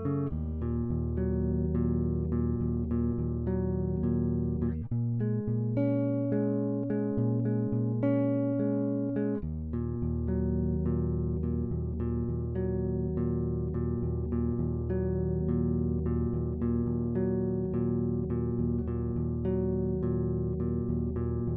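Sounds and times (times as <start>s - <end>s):
multi-phase amp: 0.0s - 21.5s.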